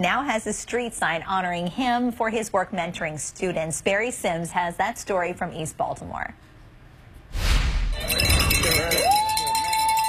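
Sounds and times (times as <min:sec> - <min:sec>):
speech: 0:00.0 - 0:06.5
bells ringing: 0:08.0 - 0:10.0.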